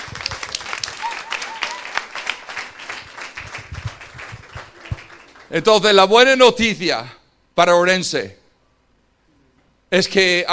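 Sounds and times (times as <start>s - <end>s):
audience applause: 0.0s - 5.6s
speech: 5.5s - 8.4s, 9.9s - 10.5s.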